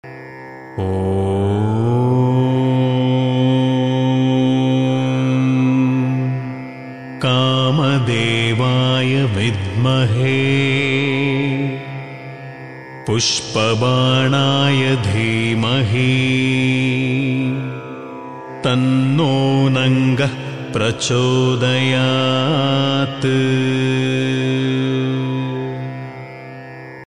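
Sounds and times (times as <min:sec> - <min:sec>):
mantra chanting: 0:00.8 - 0:26.4.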